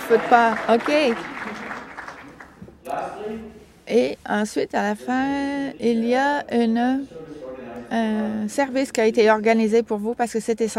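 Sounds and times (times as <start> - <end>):
audience applause at an assembly honoring a women's committee: 0.0 - 2.6
speech: 0.1 - 1.4, 2.9 - 10.7.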